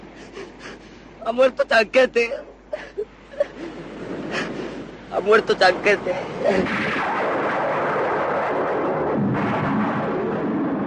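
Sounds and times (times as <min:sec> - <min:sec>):
speech: 0:01.2 - 0:02.5, 0:05.1 - 0:07.1
loud rolling thunder with crackles: 0:03.7 - 0:10.8.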